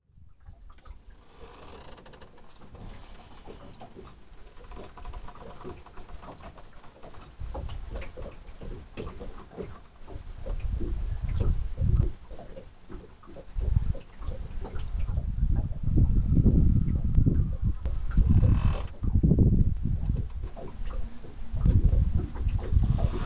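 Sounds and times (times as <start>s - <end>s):
strong gale wind: 10.3s - 12.3s, 13.6s - 23.2s.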